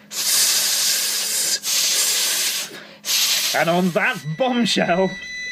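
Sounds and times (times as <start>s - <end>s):
people imitating snake hissing: 0.0s - 3.8s
speech: 3.6s - 5.3s.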